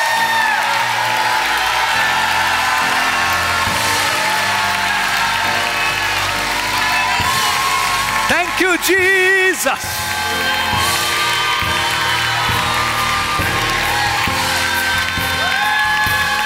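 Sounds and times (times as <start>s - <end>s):
audience clapping: 0.0s - 16.4s
people shouting praise to the Lord: 0.0s - 16.4s
speech: 8.6s - 10.6s.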